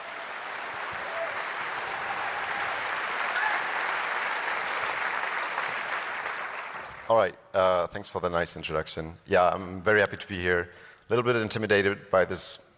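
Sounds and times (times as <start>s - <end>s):
audience applause: 0.0s - 7.1s
speech: 7.1s - 12.7s.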